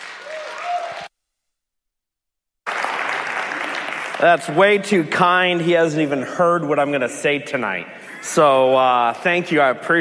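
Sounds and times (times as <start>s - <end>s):
audience applause: 0.0s - 1.1s, 2.7s - 4.6s
speech: 4.2s - 9.9s.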